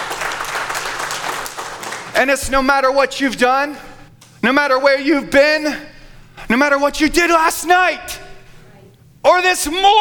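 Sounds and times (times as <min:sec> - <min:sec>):
audience applauding: 0:00.0 - 0:02.2
speech: 0:02.2 - 0:05.9, 0:06.5 - 0:08.2, 0:09.2 - 0:09.9.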